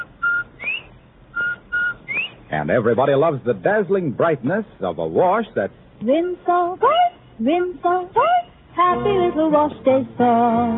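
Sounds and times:
bobwhite quail whistle call: 0:00.0 - 0:02.5
speech: 0:02.5 - 0:10.7.

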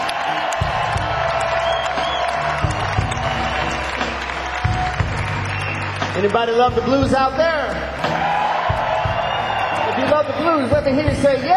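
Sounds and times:
scattered audience whoops: 0:00.0 - 0:06.0, 0:08.0 - 0:10.4
audience applause: 0:00.0 - 0:11.0
speech: 0:06.2 - 0:07.7, 0:10.2 - 0:11.5.

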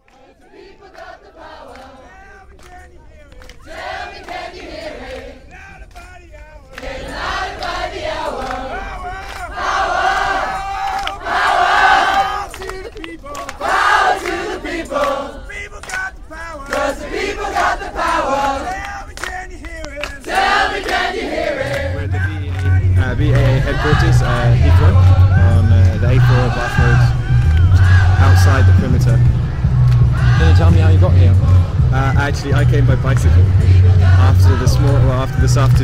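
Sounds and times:
protest crowd chanting in a car park: 0:00.0 - 0:35.8
speech: 0:32.4 - 0:35.8.

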